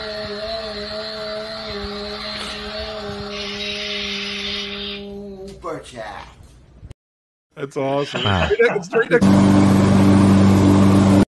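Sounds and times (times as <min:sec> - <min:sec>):
speech: 0:05.8 - 0:06.4, 0:07.6 - 0:09.8
laughter: 0:08.0 - 0:09.2
lawn mower engine running: 0:09.2 - 0:11.2.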